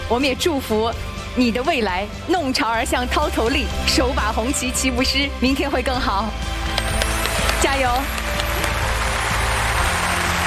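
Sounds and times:
speech: 0.1 - 6.6, 7.6 - 8.2
audience applause at a televised poetry competition: 6.7 - 10.4.

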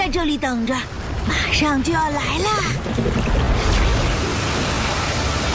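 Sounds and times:
speech: 0.2 - 3.4
Old Faithful cold water geyser erupting: 1.4 - 5.5.

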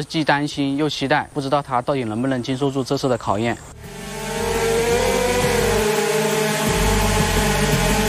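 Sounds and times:
speech: 0.0 - 3.8
drone rotors whirring: 3.6 - 8.0.

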